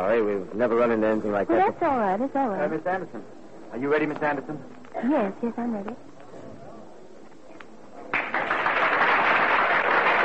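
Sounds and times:
speech: 0:00.1 - 0:06.1
audience applause: 0:08.1 - 0:10.2.

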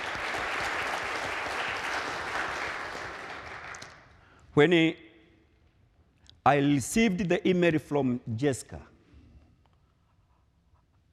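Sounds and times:
audience clapping hands: 0:00.0 - 0:04.2
speech: 0:04.6 - 0:05.0, 0:06.4 - 0:08.9.

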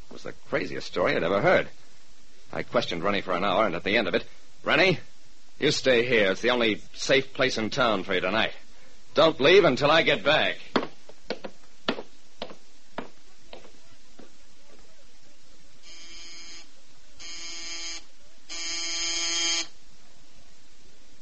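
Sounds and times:
speech: 0:00.2 - 0:01.8, 0:02.5 - 0:08.6, 0:09.2 - 0:10.6
harsh electric door buzzer: 0:15.8 - 0:19.8.

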